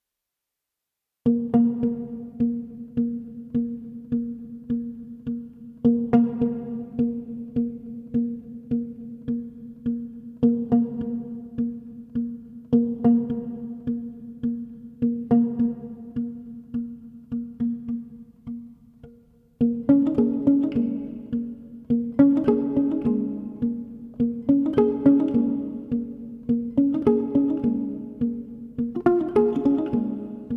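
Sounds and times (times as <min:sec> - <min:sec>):
rumba guitar music: 0:01.3 - 0:30.5.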